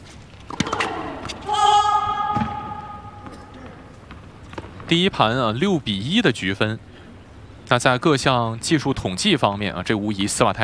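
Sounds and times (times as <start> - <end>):
faint noise: 0.0 - 10.6
tennis ball bounced on the court before a serve: 0.4 - 1.4, 2.3 - 4.8
speech: 4.9 - 6.9, 7.7 - 10.6.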